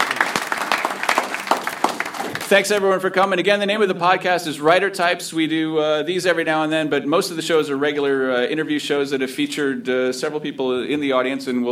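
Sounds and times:
audience applause: 0.0 - 2.8
speech: 2.5 - 11.7.

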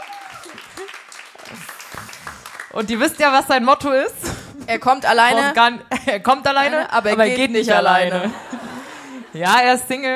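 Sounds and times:
people cheering: 0.0 - 2.5
audience clapping at a live comedy show: 0.0 - 3.4
speech: 2.8 - 8.5, 9.3 - 10.1.

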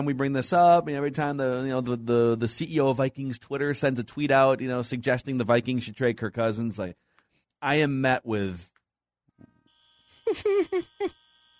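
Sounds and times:
speech: 0.0 - 7.0, 7.6 - 8.8, 10.3 - 11.2
shot clock buzzer: 9.6 - 11.5.

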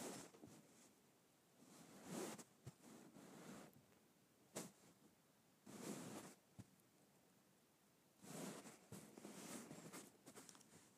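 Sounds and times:
fabric being stroked: 0.0 - 1.0, 1.6 - 3.8, 5.6 - 6.4, 8.2 - 10.9.

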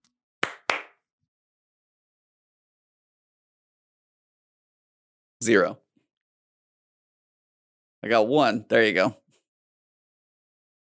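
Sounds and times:
hand claps: 0.4 - 1.1
speech: 5.4 - 5.8, 8.0 - 9.2.

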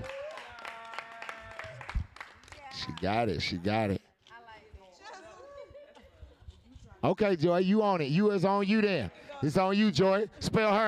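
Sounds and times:
clapping: 0.0 - 3.2
speech: 2.8 - 4.0, 7.1 - 10.8.

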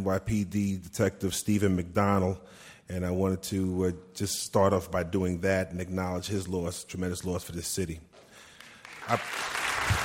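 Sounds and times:
speech: 0.0 - 8.1, 9.0 - 9.6
audience clapping: 8.5 - 10.0.

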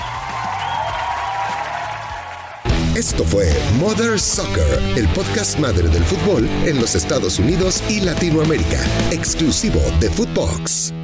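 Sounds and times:
standing ovation applause: 0.0 - 2.8
speech: 3.0 - 11.0.

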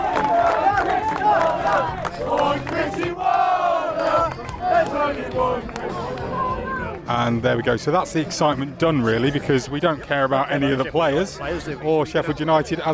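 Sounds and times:
large crowd cheering at open day: 0.0 - 7.1
speech: 7.2 - 12.9.

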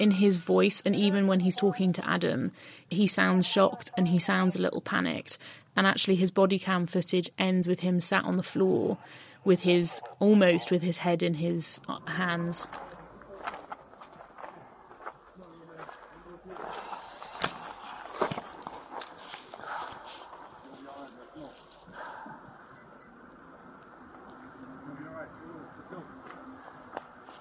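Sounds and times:
speech: 0.0 - 13.6
footsteps of police officers walking up to a wooden fence: 12.6 - 20.4.

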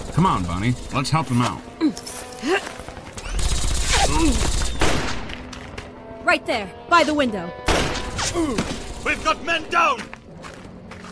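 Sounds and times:
speech: 0.2 - 3.0, 4.0 - 4.6, 6.3 - 7.7, 8.3 - 10.2
gunfire in an audio drama shootout at a house: 3.4 - 5.3, 7.7 - 9.0.

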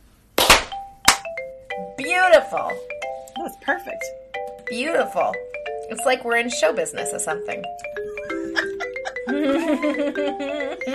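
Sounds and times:
synchronized hand clap: 0.4 - 1.3
speech: 2.0 - 7.9, 9.3 - 10.9
laughter: 8.2 - 10.9.

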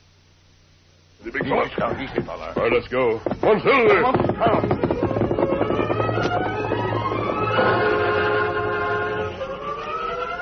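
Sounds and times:
speech: 1.2 - 5.3
westbound freight train rolling through town: 4.3 - 10.4.

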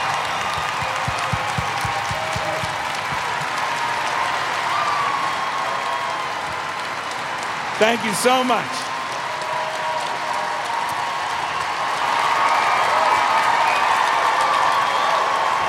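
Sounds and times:
whoops and cheers: 0.0 - 7.0, 8.8 - 15.6
large crowd clapping: 0.0 - 15.6
speech: 7.8 - 8.9.

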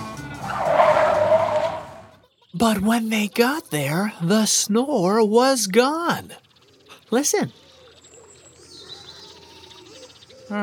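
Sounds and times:
cartoon car zooming off with skidding tires: 0.4 - 2.1
speech: 2.6 - 6.4, 7.1 - 7.6.

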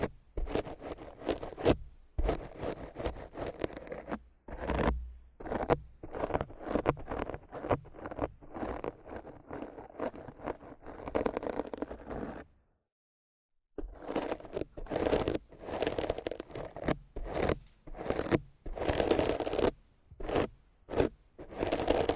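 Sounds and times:
rough scratching and brushing against a microphone: 0.0 - 12.5, 13.8 - 22.1.

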